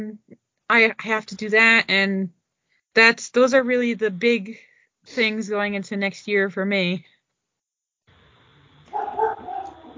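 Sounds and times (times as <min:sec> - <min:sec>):
speech: 0:00.0 - 0:02.4, 0:03.0 - 0:07.1
dog barking: 0:08.9 - 0:09.9.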